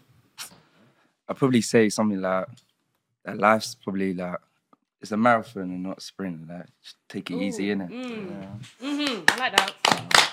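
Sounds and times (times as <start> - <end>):
speech: 1.3 - 10.2
people clapping: 9.0 - 10.3.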